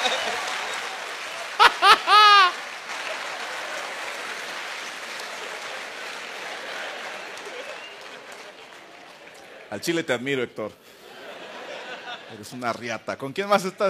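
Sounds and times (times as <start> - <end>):
audience applause: 0.0 - 9.9
laughter: 1.5 - 2.6, 11.0 - 12.5
speech: 9.7 - 11.0, 12.3 - 13.8.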